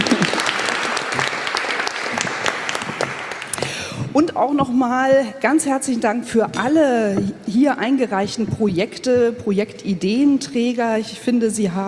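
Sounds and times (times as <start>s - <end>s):
audience applause: 0.0s - 3.8s
speech: 4.2s - 11.8s.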